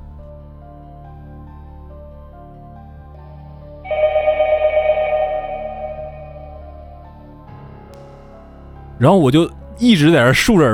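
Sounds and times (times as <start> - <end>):
telephone bell ringing: 3.9 - 6.9
speech: 9.0 - 10.7.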